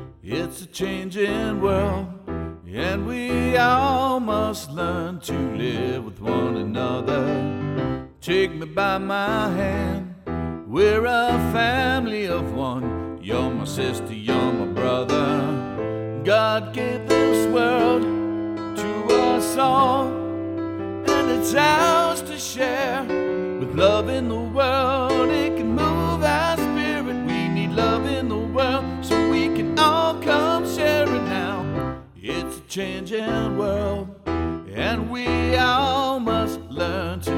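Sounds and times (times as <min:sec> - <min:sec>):
person singing: 0:00.1 - 0:37.3.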